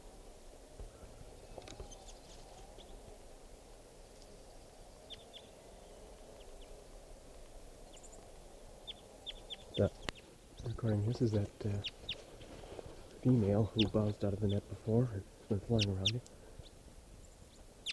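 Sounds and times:
steady hissing noise: 0.0s - 17.9s
juvenile type 4 crossbill singing: 1.4s - 3.1s, 4.4s - 6.8s, 7.8s - 14.8s, 15.5s - 17.9s
speech: 9.8s - 10.1s, 10.8s - 12.0s, 13.2s - 16.4s.

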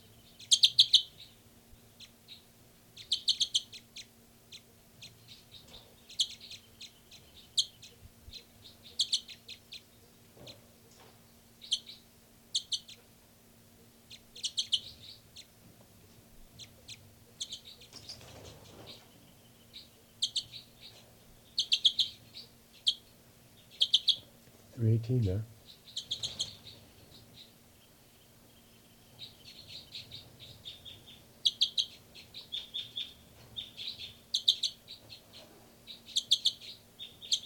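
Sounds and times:
high-pitched bird chirps: 0.4s - 1.2s, 3.0s - 3.9s, 6.1s - 9.5s, 11.6s - 13.0s, 14.1s - 15.2s, 19.8s - 21.0s, 21.6s - 22.2s, 23.7s - 24.2s, 25.8s - 26.8s, 29.2s - 34.8s, 35.9s - 37.4s
speech: 25.0s - 25.5s.

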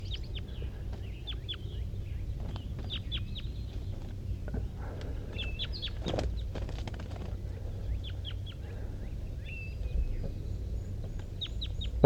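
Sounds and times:
wild birds calling: 0.0s - 12.0s.

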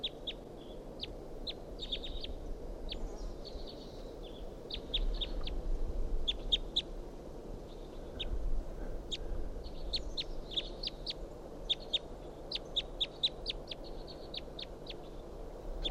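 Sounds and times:
wild bird calling in chirps and trills: 0.0s - 5.6s, 9.1s - 15.2s
low rumble: 0.0s - 15.8s.

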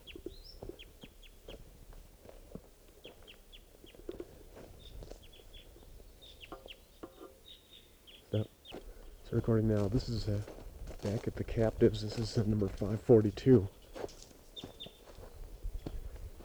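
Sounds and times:
wild bird calling from the trees: 3.0s - 15.2s
speech: 9.3s - 13.8s.

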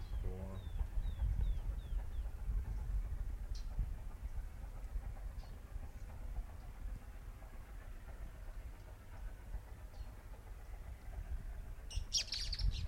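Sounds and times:
three birds singing at once: 0.0s - 3.8s, 11.9s - 12.8s
steady loud low rumble: 0.0s - 12.8s.

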